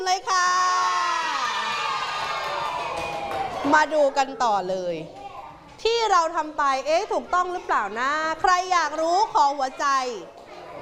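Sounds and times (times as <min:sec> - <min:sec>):
speech: 0:00.1 - 0:00.4, 0:03.6 - 0:05.2, 0:05.8 - 0:10.4
classroom children cheering and shouting: 0:00.5 - 0:03.7.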